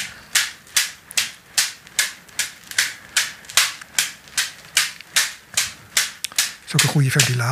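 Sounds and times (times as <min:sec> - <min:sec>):
whip striking buttocks: 0:00.0 - 0:07.5
speech: 0:06.7 - 0:07.5.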